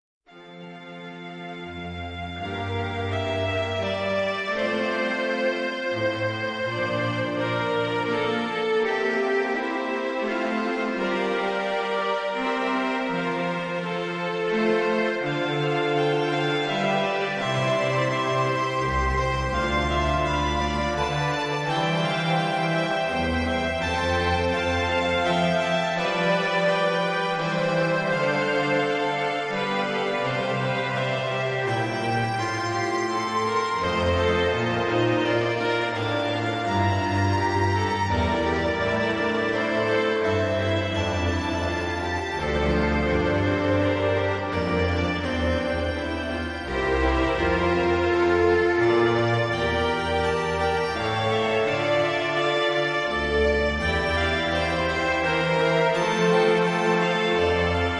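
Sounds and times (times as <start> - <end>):
two violins playing: 0.3 - 57.9.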